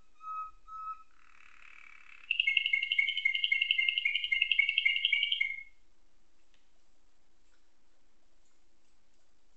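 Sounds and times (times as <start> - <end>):
Atlantic canary singing nightingale-tutored song: 0.0 - 5.8.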